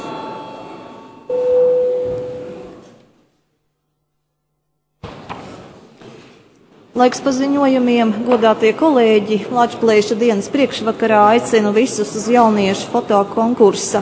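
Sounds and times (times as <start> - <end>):
electric parliament session bell ringing: 0.0 - 2.7
speech: 7.0 - 13.9.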